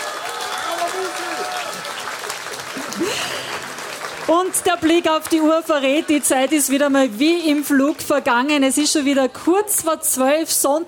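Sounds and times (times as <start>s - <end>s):
audience applause: 0.0s - 8.0s
speech: 4.3s - 10.8s.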